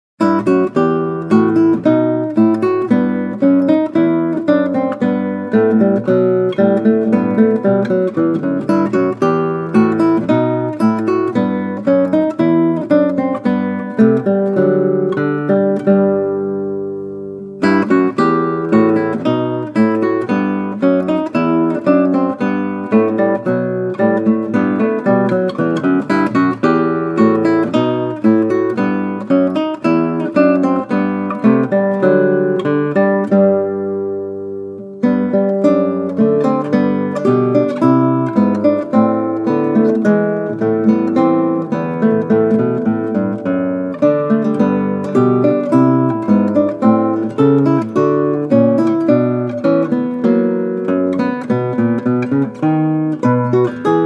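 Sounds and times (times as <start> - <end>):
classical guitar: 0.2 - 54.0.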